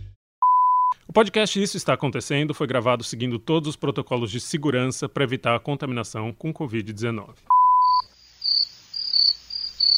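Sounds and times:
speech: 0:01.1 - 0:07.6
crickets chirping around an isolated house in the woods near a lake: 0:07.8 - 0:09.9.

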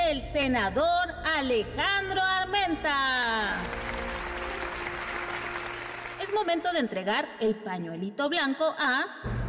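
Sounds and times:
speech: 0:00.1 - 0:04.0, 0:06.3 - 0:09.3
crowd applause: 0:03.4 - 0:06.7.

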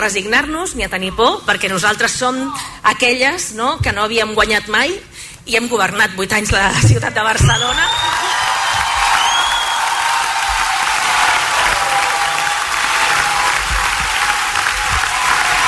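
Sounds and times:
speech: 0:00.0 - 0:08.2
high whistles: 0:07.5 - 0:10.2
cheering: 0:07.5 - 0:15.6
large crowd clapping: 0:07.8 - 0:15.6.

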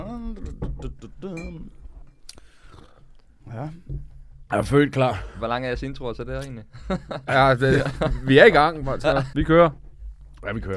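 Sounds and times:
glass of water clinking: 0:01.3 - 0:02.3
speech: 0:04.5 - 0:09.8, 0:10.4 - 0:10.7.

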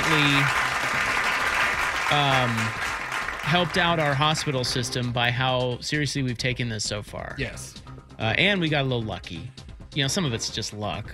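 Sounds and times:
golf clap: 0:00.0 - 0:04.6
speech: 0:00.1 - 0:00.6, 0:02.1 - 0:11.1.

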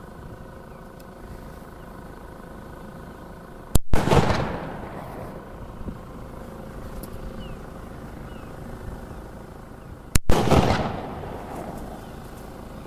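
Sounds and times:
shotgun firing black powder blanks at a flock of gulls: 0:03.8 - 0:05.4, 0:10.1 - 0:11.9.

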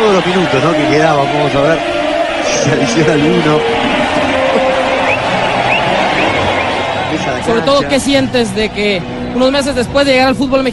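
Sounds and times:
stadium crowd applause: 0:00.0 - 0:08.8
speech: 0:00.2 - 0:04.3, 0:07.2 - 0:10.7.

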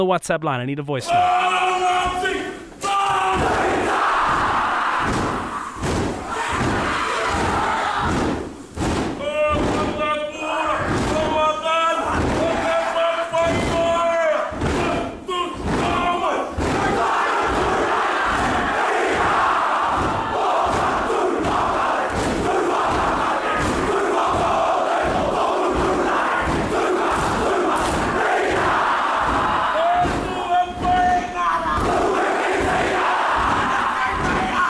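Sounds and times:
speech: 0:00.0 - 0:02.2
group shouting a New Zealand haka war cry in unison: 0:01.1 - 0:34.6
heavy stomps and slaps: 0:02.8 - 0:34.6.

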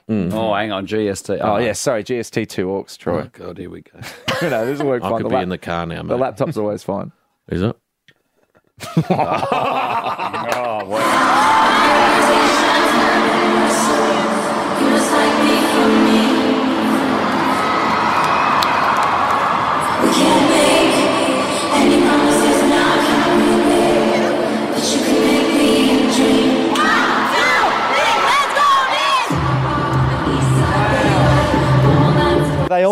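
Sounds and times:
speech: 0:00.1 - 0:07.8, 0:08.8 - 0:12.2
laughter: 0:04.0 - 0:05.4, 0:08.8 - 0:11.5
large stadium crowd chanting in unison: 0:10.9 - 0:31.8.

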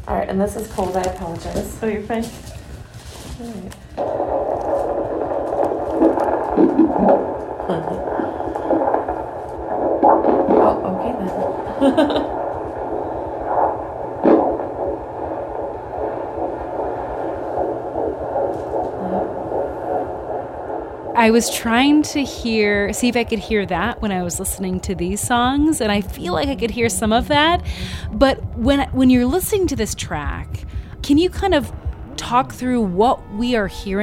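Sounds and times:
speech: 0:00.0 - 0:02.6, 0:03.4 - 0:04.6, 0:21.2 - 0:34.0
constant hum: 0:00.0 - 0:34.0
fetal Doppler monitor picking up a rapid baby's heartbeat: 0:00.1 - 0:34.0
person laughing: 0:11.7 - 0:12.4.

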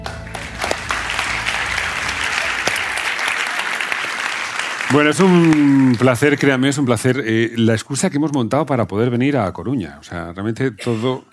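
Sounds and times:
audience applause: 0:00.0 - 0:07.0
speech: 0:04.9 - 0:11.3.

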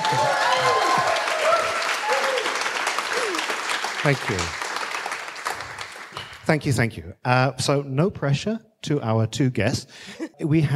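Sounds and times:
faint voices and brief whoops: 0:00.0 - 0:03.6
audience applause: 0:00.0 - 0:06.2
speech: 0:04.0 - 0:04.6, 0:06.5 - 0:10.7.

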